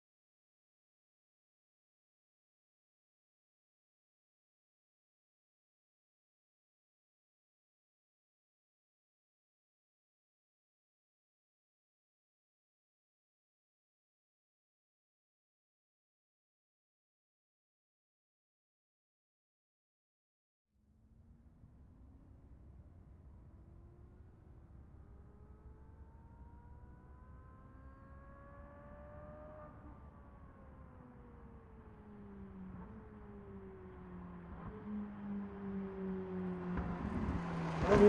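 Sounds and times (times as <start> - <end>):
Ferrari 458 passing fast outside: 21.6 - 38.0.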